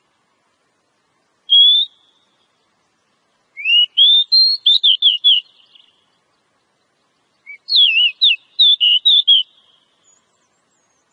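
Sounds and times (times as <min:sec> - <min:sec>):
Oriental magpie-robin whistling phrases: 0:01.5 - 0:02.2, 0:03.6 - 0:05.9, 0:07.4 - 0:09.9.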